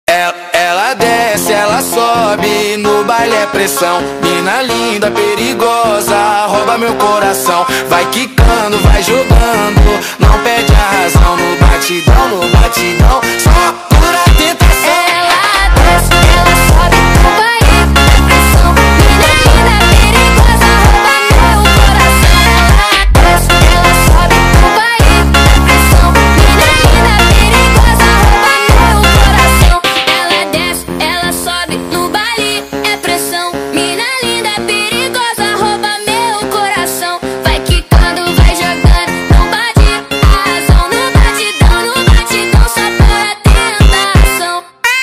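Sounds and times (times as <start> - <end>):
phonk music: 0.1 - 45.0.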